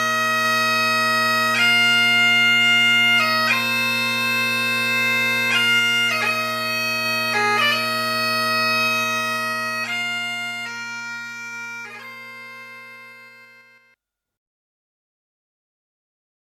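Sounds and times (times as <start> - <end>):
pibroch bagpipe music: 0.0 - 14.0.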